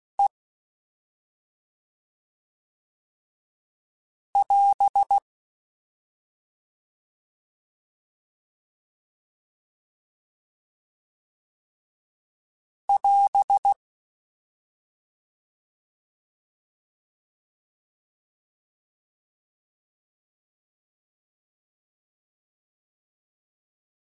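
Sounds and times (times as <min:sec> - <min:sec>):
Morse code radio QSOs: 0:04.4 - 0:05.2, 0:12.9 - 0:13.8.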